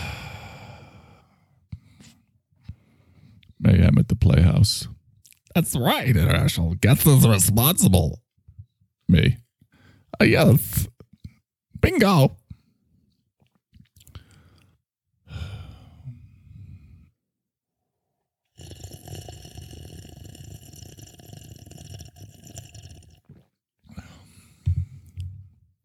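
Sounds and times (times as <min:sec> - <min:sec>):
speech: 0:03.9 - 0:05.0, 0:05.6 - 0:08.2, 0:09.1 - 0:09.4, 0:10.2 - 0:10.9, 0:11.8 - 0:12.4
bong rip sound effect: 0:18.6 - 0:23.5.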